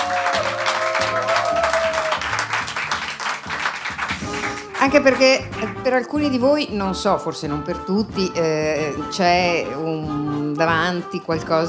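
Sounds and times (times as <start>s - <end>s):
audience applause: 0.0s - 5.5s
speech: 4.8s - 11.6s.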